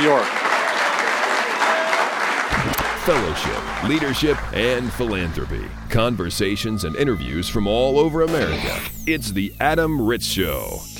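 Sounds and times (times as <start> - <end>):
speech: 0.0 - 0.4, 3.1 - 10.9
audience applause: 0.0 - 6.8.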